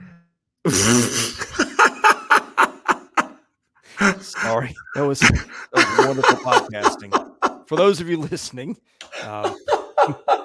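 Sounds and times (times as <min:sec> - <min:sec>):
speech: 0:00.6 - 0:01.3, 0:04.6 - 0:10.4
person sneezing: 0:00.7 - 0:01.5
laughter: 0:01.1 - 0:03.4, 0:04.0 - 0:08.5, 0:09.1 - 0:10.4.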